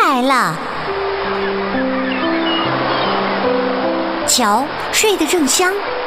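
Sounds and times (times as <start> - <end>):
sea waves crashing onto beach: 0.2 - 6.0
speech: 4.4 - 6.0.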